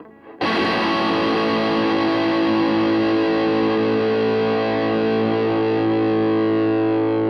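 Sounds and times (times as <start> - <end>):
Maybach sustain tone: 0.0 - 7.1.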